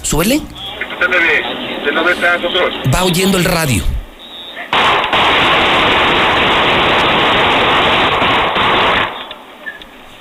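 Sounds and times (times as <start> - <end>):
speech: 0.1 - 4.0
many gunshots in a shootout: 4.7 - 9.3.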